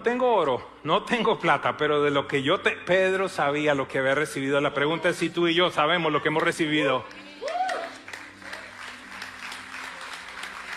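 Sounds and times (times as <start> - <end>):
speech: 0.0 - 7.3
audience clapping: 6.3 - 10.7
rising vocal cheer or shout: 6.7 - 8.1.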